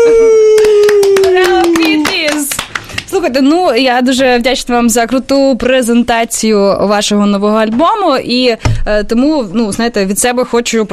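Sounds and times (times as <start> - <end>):
applause: 0.6 - 3.1
speech: 3.4 - 10.9.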